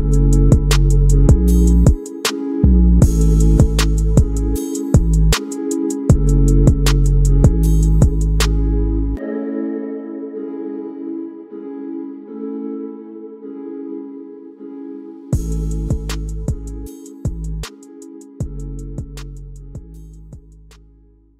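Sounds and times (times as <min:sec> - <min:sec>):
trap hip hop beat: 0:00.0 - 0:11.1, 0:15.3 - 0:20.9.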